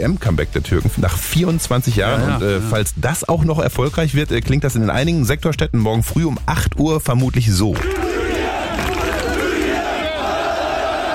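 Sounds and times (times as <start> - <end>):
speech: 0.0 - 8.1
celebrating fans cheering and shouting: 7.7 - 11.1.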